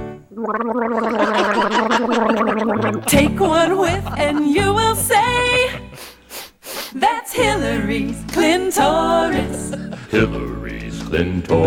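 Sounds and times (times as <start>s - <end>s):
person gargling minty mouthwash: 0.3s - 4.4s
speech: 0.4s - 5.8s, 7.4s - 11.6s
laughter: 1.2s - 6.2s, 9.2s - 10.4s.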